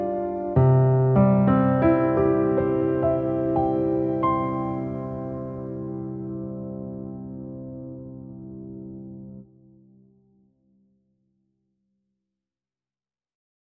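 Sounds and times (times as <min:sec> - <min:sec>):
piano piece: 0:00.0 - 0:10.8.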